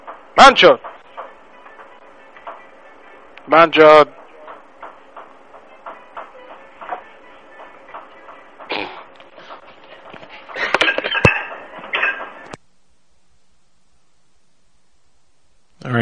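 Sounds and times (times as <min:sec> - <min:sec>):
speech: 0:00.4 - 0:00.9, 0:03.5 - 0:04.2
dishes clattering in back room: 0:04.2 - 0:12.5.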